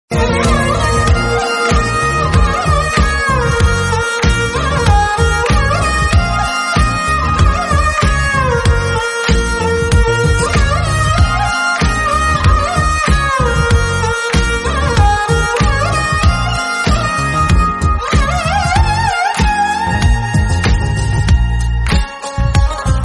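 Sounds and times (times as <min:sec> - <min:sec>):
Tamil background music ringtone: 0:00.1 - 0:23.0.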